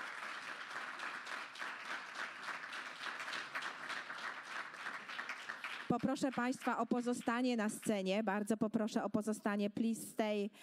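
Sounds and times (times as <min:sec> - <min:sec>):
audience applause: 0:00.0 - 0:06.5
speech: 0:05.9 - 0:10.6.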